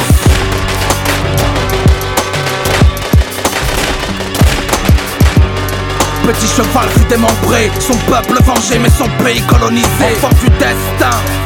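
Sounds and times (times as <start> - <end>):
hail of gunfire: 0.1 - 7.0
speech: 6.3 - 11.4.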